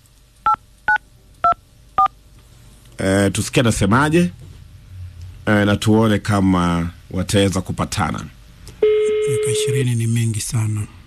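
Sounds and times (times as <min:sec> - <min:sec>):
speech: 0:03.0 - 0:04.4, 0:05.5 - 0:08.4, 0:09.5 - 0:11.0
phone keypad DTMF tones while dialing a call: 0:08.8 - 0:09.9.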